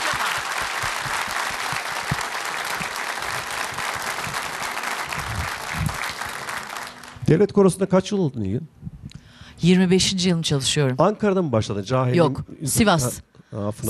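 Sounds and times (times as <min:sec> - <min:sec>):
applause for Turkish folk music choir singers: 0:00.0 - 0:07.3
speech: 0:07.3 - 0:08.8, 0:09.6 - 0:13.8.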